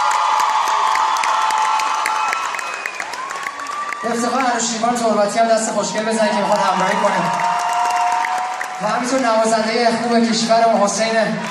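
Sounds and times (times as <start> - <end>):
concert audience cheering: 0.0 - 9.9
concert audience clapping: 0.0 - 11.4
speech: 4.0 - 7.5, 8.8 - 11.4.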